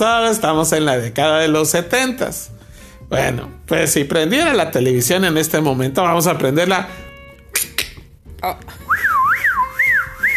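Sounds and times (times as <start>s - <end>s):
speech: 0.0s - 7.0s, 8.4s - 8.8s
wavering whistle swooping up and down in pitch: 8.9s - 10.3s.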